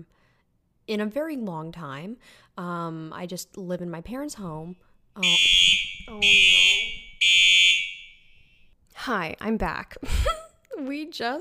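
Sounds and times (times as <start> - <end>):
speech: 0.9 - 6.9, 9.0 - 11.4
dormitory fire alarm sounding: 5.2 - 8.7.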